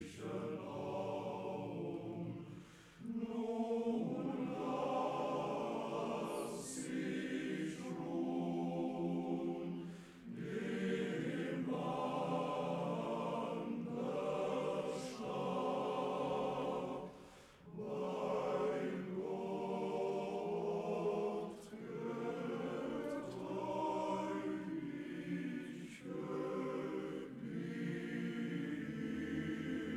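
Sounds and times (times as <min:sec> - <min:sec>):
male choir singing: 0:00.0 - 0:29.9.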